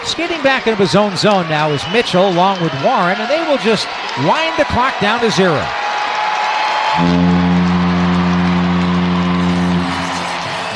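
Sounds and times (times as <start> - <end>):
speech: 0.2 - 5.8, 7.0 - 7.3
arena foghorn in Anaheim at end of game: 7.0 - 10.7.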